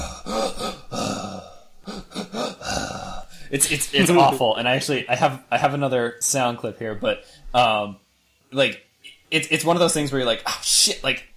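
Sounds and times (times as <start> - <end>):
Resident Evil 4 regenerator zombie breathing video game sound: 0.0 - 4.3
speech: 3.5 - 11.3.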